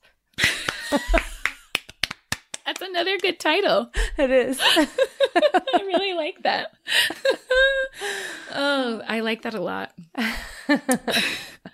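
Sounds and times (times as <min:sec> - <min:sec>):
hand clapping: 0:00.4 - 0:03.4
speech: 0:00.9 - 0:01.2, 0:02.9 - 0:11.5.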